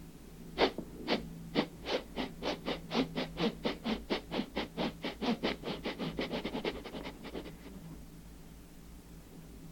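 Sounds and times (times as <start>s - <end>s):
human voice imitating a chugging train: 0.6s - 7.6s.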